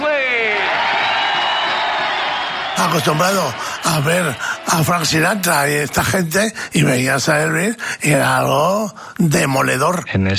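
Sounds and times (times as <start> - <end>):
crowd cheering, whooping, shouting and screaming: 0.0 - 6.0
applause: 0.0 - 6.4
speech: 2.8 - 10.3.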